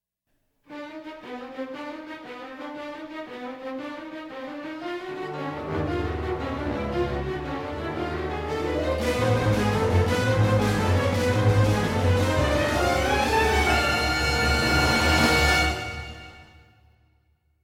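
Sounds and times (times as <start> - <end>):
short suspense music: 5.1 - 16.8.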